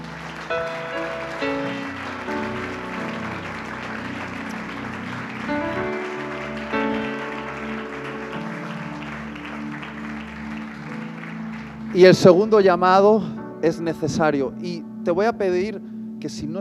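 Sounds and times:
applause: 0:00.0 - 0:13.2
speech: 0:00.5 - 0:00.9, 0:12.0 - 0:16.5.

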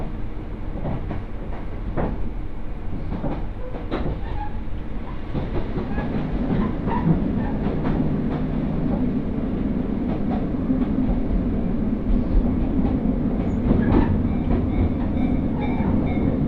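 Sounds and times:
Mizushima Rinkai Railway train wheels and running gear rumbling: 0:00.0 - 0:16.4.

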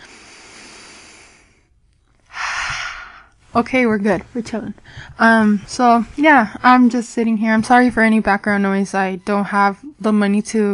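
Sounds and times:
people breathing deeply together: 0:00.0 - 0:03.4
speech: 0:03.6 - 0:10.7.

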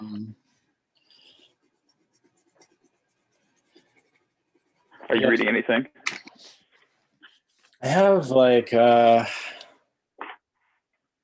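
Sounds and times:
pen or pencil writing on a drawing: 0:00.4 - 0:05.0
speech: 0:05.1 - 0:06.0, 0:07.8 - 0:09.4.

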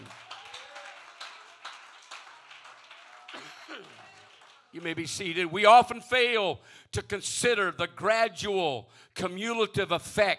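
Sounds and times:
audience clapping hands: 0:00.0 - 0:05.5
speech: 0:03.4 - 0:10.3.

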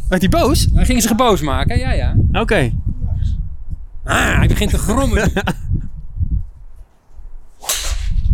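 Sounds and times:
speech: 0:00.1 - 0:02.8, 0:04.0 - 0:05.6
laughter: 0:04.6 - 0:05.6
golf driver swing hitting ball: 0:07.6 - 0:08.2.

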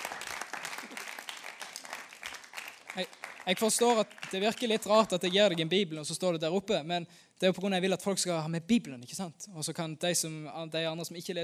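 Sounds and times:
audience applause: 0:00.0 - 0:05.2
speech: 0:03.0 - 0:11.4.

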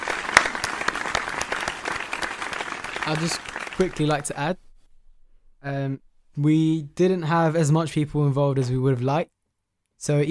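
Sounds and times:
audience applause: 0:00.0 - 0:04.3
speech: 0:03.1 - 0:04.6, 0:05.6 - 0:09.4, 0:10.0 - 0:10.2.

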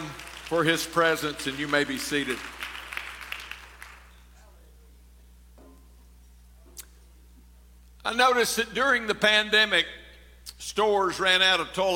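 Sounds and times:
audience clapping hands: 0:00.0 - 0:04.1
speech: 0:00.5 - 0:02.6, 0:08.2 - 0:11.9.

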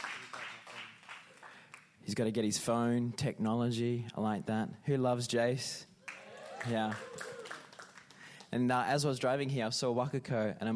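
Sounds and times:
crowd clapping: 0:00.0 - 0:02.0, 0:06.0 - 0:08.6
speech: 0:02.1 - 0:05.9, 0:06.6 - 0:07.2, 0:08.5 - 0:10.7.

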